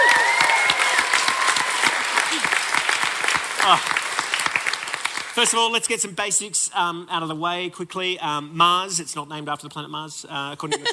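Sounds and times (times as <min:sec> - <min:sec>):
brief cheer: 0:00.0 - 0:02.4
audience applause: 0:00.0 - 0:05.6
speech: 0:03.6 - 0:04.0, 0:05.4 - 0:10.9.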